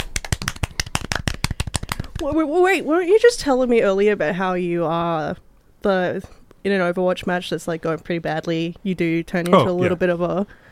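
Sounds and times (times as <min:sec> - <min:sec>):
small group clapping: 0:00.0 - 0:02.0
speech: 0:02.2 - 0:10.6.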